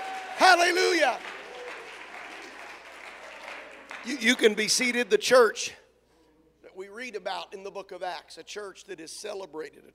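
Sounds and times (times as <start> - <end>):
audience clapping: 0.0 - 4.9
speech: 0.6 - 1.4, 4.0 - 5.8, 6.8 - 9.9.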